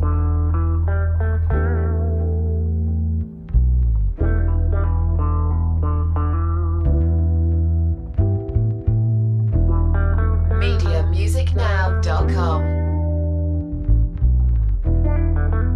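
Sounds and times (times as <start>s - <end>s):
funky groovy music without drums: 0.0s - 15.7s.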